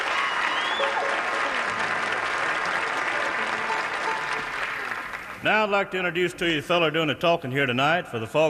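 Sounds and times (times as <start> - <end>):
audience applause: 0.0 - 5.5
speech: 5.4 - 8.4.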